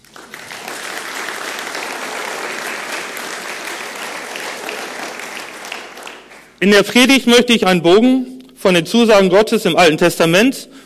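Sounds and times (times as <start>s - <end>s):
audience applause: 0.0s - 6.6s
speech: 6.6s - 10.8s.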